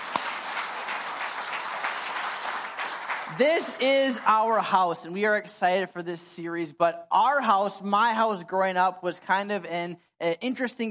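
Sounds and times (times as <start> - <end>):
audience applause: 0.0 - 3.8
speech: 3.3 - 10.8.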